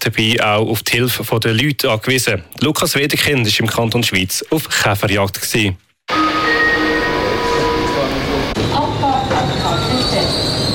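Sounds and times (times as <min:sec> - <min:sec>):
speech: 0:00.0 - 0:06.2
passenger train stopping at a station: 0:06.1 - 0:10.7.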